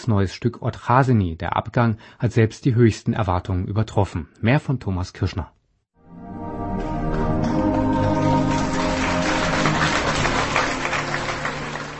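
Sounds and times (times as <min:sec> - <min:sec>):
speech: 0:00.0 - 0:05.6
long sustained theatre audience applause: 0:06.8 - 0:11.9.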